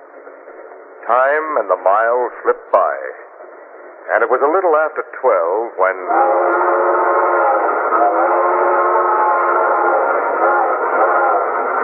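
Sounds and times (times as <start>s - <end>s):
speech: 1.1s - 3.2s, 4.0s - 8.4s
train whistle blowing: 6.0s - 11.8s.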